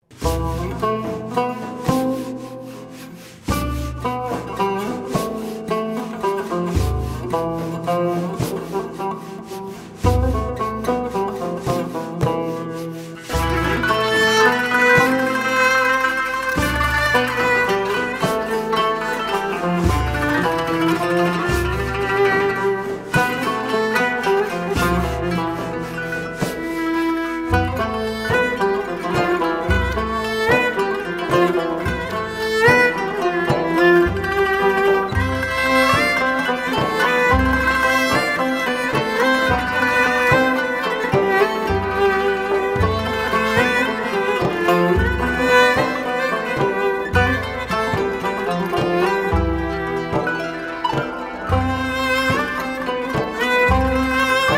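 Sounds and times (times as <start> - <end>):
instrumental music: 0.0 - 54.5.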